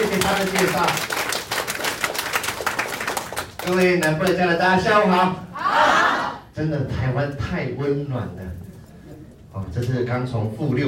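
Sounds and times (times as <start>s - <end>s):
audience applause: 0.0s - 3.9s
speech: 0.3s - 1.3s, 3.7s - 5.9s, 6.6s - 8.6s, 9.6s - 10.8s.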